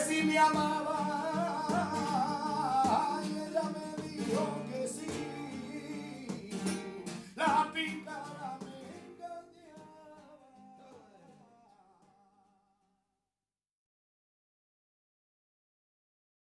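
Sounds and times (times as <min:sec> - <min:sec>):
flamenco guitar: 0:00.0 - 0:12.6.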